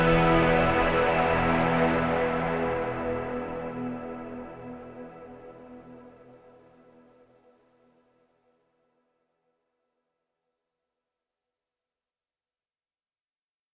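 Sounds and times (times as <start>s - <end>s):
loss ambient music: 0.0s - 8.2s.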